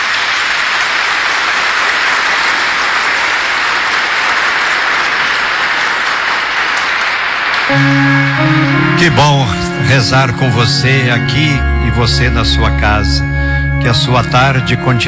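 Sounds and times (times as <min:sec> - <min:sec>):
audience applause: 0:00.0 - 0:09.4
speech: 0:07.7 - 0:08.1, 0:09.0 - 0:15.0.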